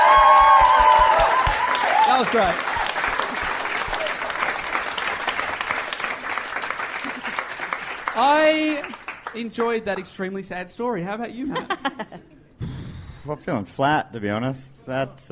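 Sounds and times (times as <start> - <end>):
audience applause: 0.0 - 10.0
speech: 2.2 - 2.7, 8.2 - 12.3, 13.3 - 15.3
laughter: 11.4 - 12.6.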